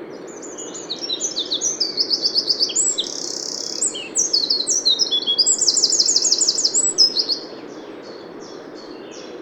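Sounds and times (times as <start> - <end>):
Eurasian wren singing: 0.2 - 9.4.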